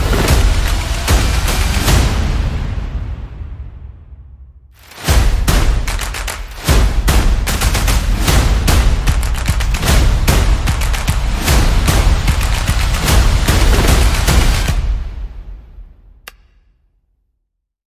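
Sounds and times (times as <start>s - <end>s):
percussion: 0.0s - 3.2s, 4.8s - 15.6s.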